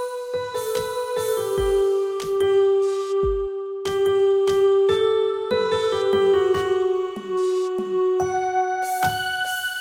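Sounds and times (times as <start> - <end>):
keyboard: 0.0 - 9.7.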